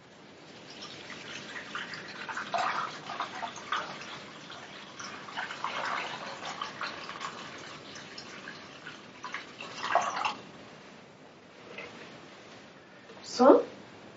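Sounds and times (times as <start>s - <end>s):
saline solution poured into an enema bag: 0.4s - 10.5s.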